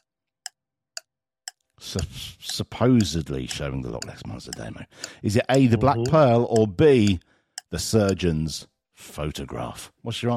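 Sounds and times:
quiz countdown clock ticking: 1.8 - 8.6
speech: 1.8 - 10.3.

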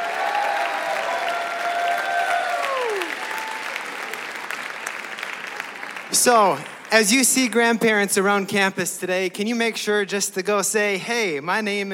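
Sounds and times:
audience applause welcoming grandparents at a school Grandparents' Day event: 0.0 - 7.2
speech: 6.2 - 11.9.

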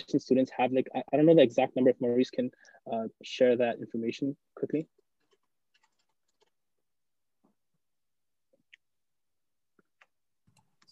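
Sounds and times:
speech: 0.0 - 5.0
slow hesitant typing on a computer keyboard: 5.2 - 6.6.

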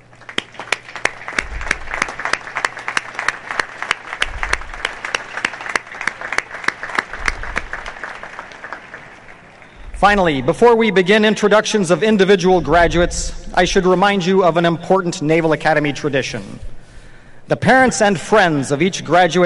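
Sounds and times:
audience applause: 0.0 - 10.4
speech: 10.0 - 16.7, 17.5 - 19.4.

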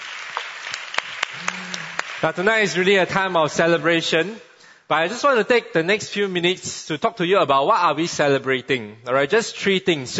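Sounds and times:
audience applause: 0.0 - 2.4
speech: 2.2 - 10.1.

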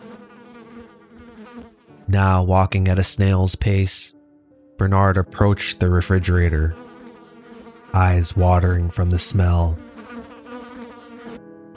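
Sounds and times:
swarm of flies buzzing: 0.0 - 2.1, 6.5 - 11.7
speech: 1.6 - 4.2, 4.8 - 6.9, 7.9 - 9.9.

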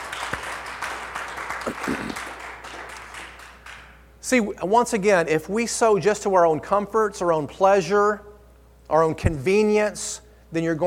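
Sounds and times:
audience hand clap: 0.0 - 4.0
speech: 1.7 - 2.4, 4.3 - 8.3, 8.9 - 10.8.

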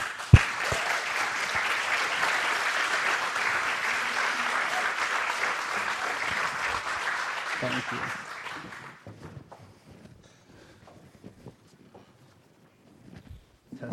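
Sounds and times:
audience applause welcoming a speaker to the stage: 0.0 - 9.1
speech: 7.6 - 8.2.

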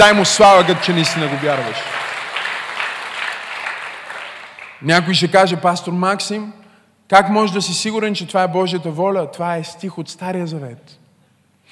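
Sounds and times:
speech: 0.0 - 2.0, 4.8 - 11.0
audience applauding: 0.0 - 4.9.

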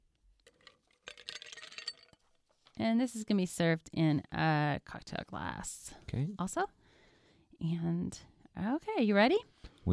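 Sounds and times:
ice cubes clattering into a cocktail shaker: 0.4 - 2.2
speech: 2.8 - 6.8, 7.6 - 9.9.

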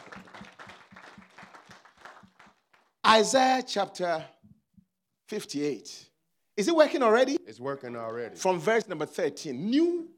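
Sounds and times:
audience clapping in a steady rhythmic beat: 0.0 - 3.0
speech: 3.1 - 4.4, 5.3 - 10.1.

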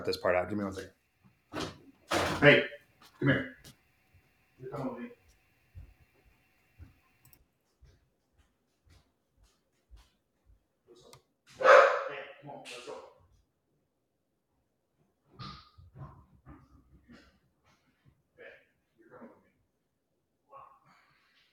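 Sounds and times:
speech: 0.0 - 1.7, 2.4 - 3.6, 4.6 - 5.2
dogs left unattended at home barking: 11.6 - 12.1.

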